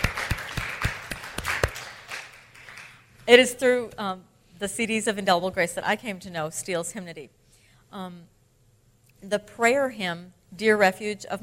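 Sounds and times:
audience applause: 0.0s - 3.0s
speech: 3.3s - 8.4s, 9.2s - 11.4s.

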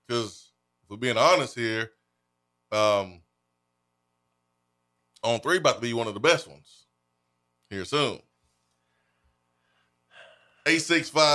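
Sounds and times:
speech: 0.1s - 2.0s, 2.7s - 3.2s, 5.2s - 6.8s, 7.7s - 8.3s, 10.6s - 11.3s
sharp gasp: 8.9s - 10.7s.

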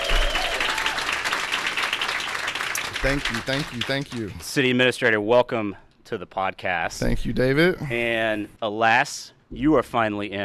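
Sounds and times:
live audience applause: 0.0s - 4.5s
speech: 3.0s - 10.4s.

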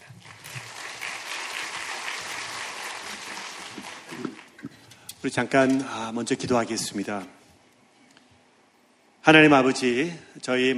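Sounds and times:
audience applauding: 0.0s - 4.9s
speech: 5.2s - 7.4s, 9.3s - 10.7s.

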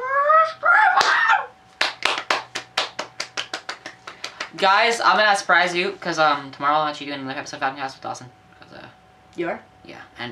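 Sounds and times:
round of applause: 1.0s - 1.2s, 1.8s - 4.6s
speech: 4.6s - 8.4s, 9.4s - 10.3s.

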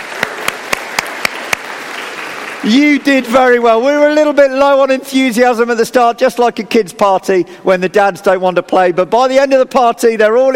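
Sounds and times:
crowd clapping: 0.0s - 3.8s
speech: 2.6s - 10.5s.

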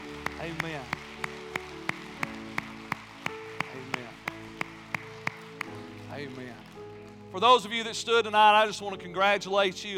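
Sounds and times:
audience clapping in unison: 0.0s - 7.6s
speech: 0.4s - 1.0s, 7.4s - 9.9s.

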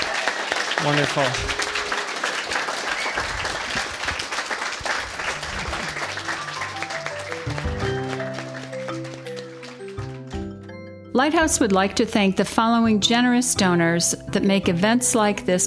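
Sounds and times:
audience applause: 0.0s - 10.6s
speech: 0.8s - 1.6s, 11.2s - 15.6s.

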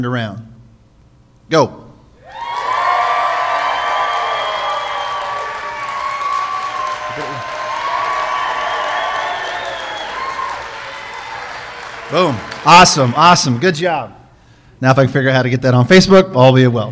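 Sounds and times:
speech: 0.0s - 0.5s, 1.5s - 1.8s, 12.1s - 14.2s, 14.8s - 16.8s
crowd cheering and shouting: 2.2s - 13.6s.

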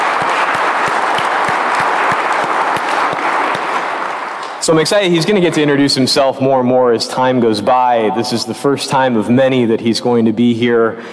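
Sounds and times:
audience applause: 0.0s - 4.8s
speech: 4.7s - 11.1s.

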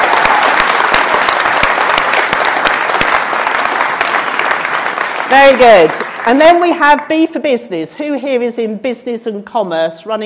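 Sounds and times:
audience applause: 0.0s - 6.6s
speech: 5.3s - 10.2s.

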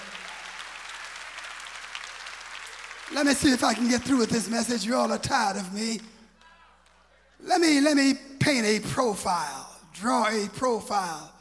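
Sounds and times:
audience clapping: 0.0s - 7.4s
speech: 3.1s - 6.2s, 7.4s - 11.4s.

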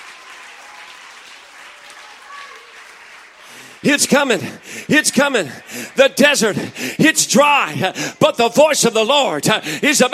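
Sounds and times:
audience clapping hands: 0.0s - 6.9s
speech: 3.8s - 10.1s.

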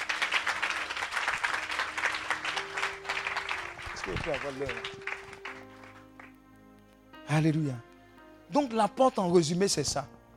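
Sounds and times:
crowd clapping: 0.0s - 6.4s
speech: 4.1s - 5.2s, 7.3s - 7.9s, 8.5s - 10.2s.

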